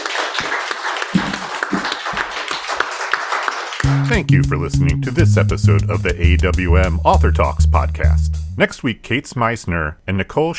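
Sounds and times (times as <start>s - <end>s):
audience applause: 0.0s - 3.9s
speech: 4.1s - 10.5s.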